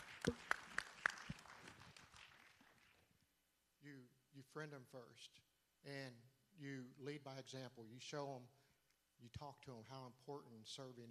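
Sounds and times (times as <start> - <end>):
hand claps: 0.0 - 3.1
speech: 0.2 - 0.5, 4.5 - 8.6, 9.2 - 11.0.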